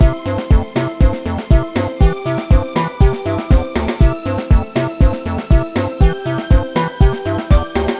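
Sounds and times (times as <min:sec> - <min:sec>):
samba pop music: 0:00.0 - 0:07.9.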